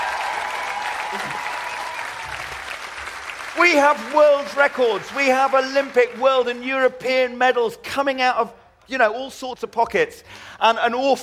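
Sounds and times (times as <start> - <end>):
festival audience cheering and applauding: 0.0 - 6.6
speech: 1.1 - 1.5, 3.6 - 11.2.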